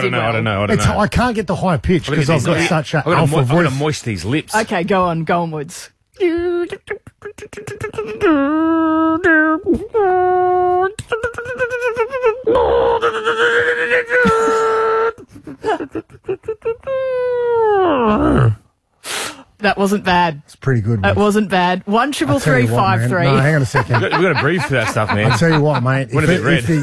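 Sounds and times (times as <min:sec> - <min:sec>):
speech: 0:00.0 - 0:26.8
voice imitating a growl: 0:11.2 - 0:15.2, 0:17.7 - 0:18.7
laughter: 0:23.3 - 0:26.8.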